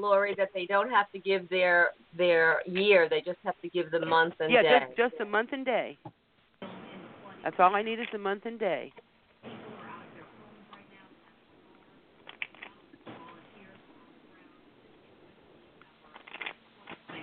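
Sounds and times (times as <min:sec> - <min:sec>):
speech: 0:00.0 - 0:06.2, 0:07.4 - 0:09.6
shuffling a deck of cards: 0:12.2 - 0:12.8, 0:16.1 - 0:17.0.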